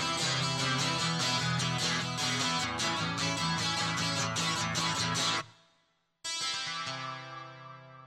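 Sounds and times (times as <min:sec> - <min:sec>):
guitar feedback loop: 0:00.0 - 0:05.5, 0:06.3 - 0:08.0.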